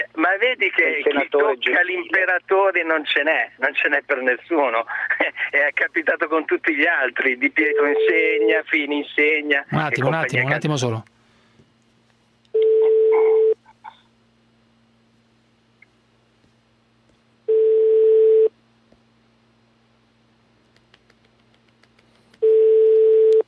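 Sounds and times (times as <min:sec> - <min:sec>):
speech: 0:00.3 - 0:11.1
telephone ringing: 0:12.6 - 0:13.6, 0:17.5 - 0:18.5, 0:22.4 - 0:23.4.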